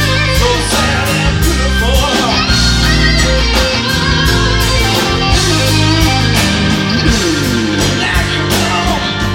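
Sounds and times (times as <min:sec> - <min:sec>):
live music performance: 0:00.0 - 0:09.3.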